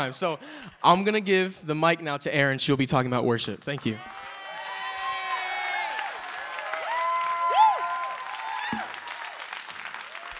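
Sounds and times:
speech: 0.0 - 4.2
audience applause and cheering: 3.8 - 10.3.

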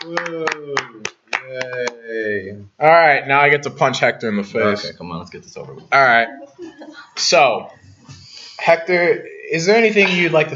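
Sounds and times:
hands clapping: 0.0 - 2.0
person cheering: 0.0 - 2.1
speech: 0.1 - 6.4, 7.2 - 7.8, 8.6 - 10.5.

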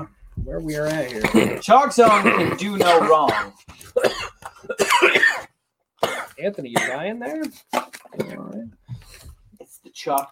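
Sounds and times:
speech: 0.5 - 5.4, 6.4 - 8.8, 10.0 - 10.3
person having a coughing fit: 1.2 - 7.1.

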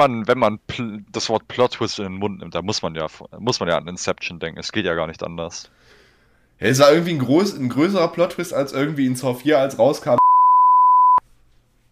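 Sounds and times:
speech: 0.0 - 6.0, 6.6 - 10.2
censor beep: 10.2 - 11.2.

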